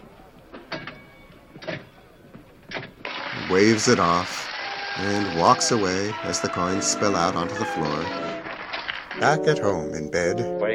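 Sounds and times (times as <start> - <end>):
slot machine lever pulled in a casino, whirring and clicking: 3.1 - 9.4
speech: 3.5 - 8.4, 9.2 - 10.7.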